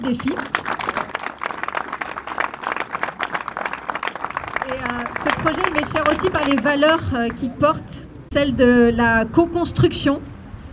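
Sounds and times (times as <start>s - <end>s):
speech: 0.0s - 0.7s, 4.7s - 10.3s
audience applause: 0.0s - 6.8s.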